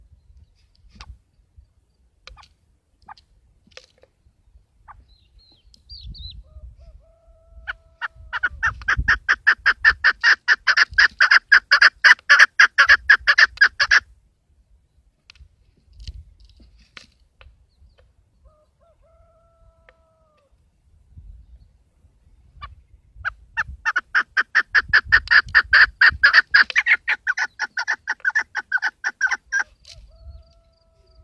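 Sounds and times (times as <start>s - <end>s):
keklik partridge calling: 4.8s - 6.7s, 8.0s - 14.0s, 22.5s - 31.2s.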